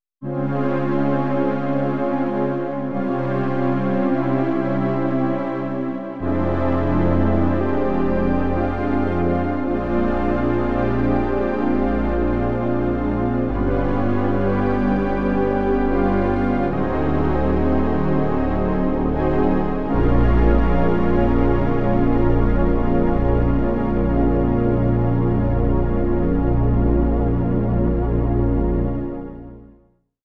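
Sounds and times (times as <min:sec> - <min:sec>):
synth pad: 0:00.2 - 0:29.6.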